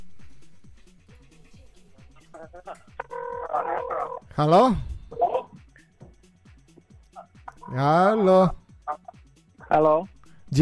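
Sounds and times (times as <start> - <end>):
low rhythmic background: 0.0 - 10.6
speech: 2.4 - 3.0, 3.6 - 4.9, 7.7 - 8.6, 9.7 - 10.6
telephone ringing with bright electronic tones: 3.0 - 4.3.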